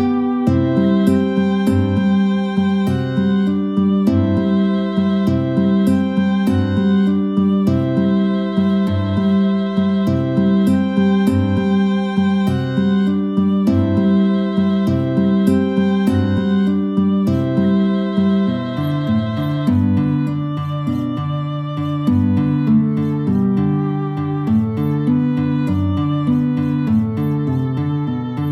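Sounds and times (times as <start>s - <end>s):
guitar playing a duet with violin: 0.0s - 28.5s
violin playing a duet with guitar: 0.0s - 28.5s.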